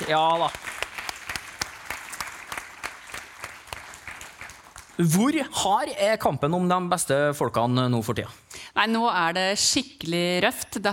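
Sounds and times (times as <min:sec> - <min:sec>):
crowd clapping: 0:00.0 - 0:05.2
speech: 0:00.1 - 0:00.7, 0:05.0 - 0:10.9.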